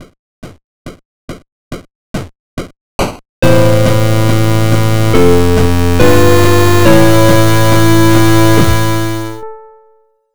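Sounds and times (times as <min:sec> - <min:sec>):
song: 0:03.4 - 0:09.8.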